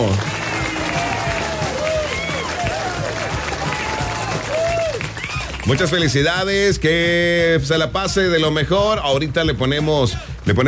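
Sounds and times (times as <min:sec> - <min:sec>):
crowd applause: 0:00.0 - 0:06.2
voices cheering and whooping: 0:00.4 - 0:06.0
speech: 0:05.7 - 0:10.6.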